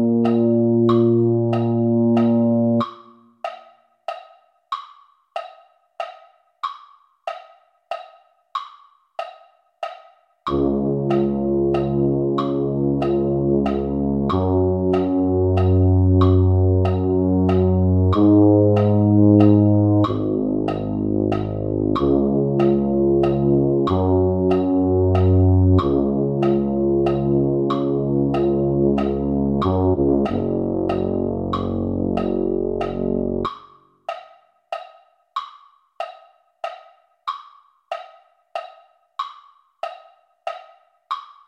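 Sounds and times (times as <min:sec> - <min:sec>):
tuba: 0:00.0 - 0:03.3, 0:10.5 - 0:33.6.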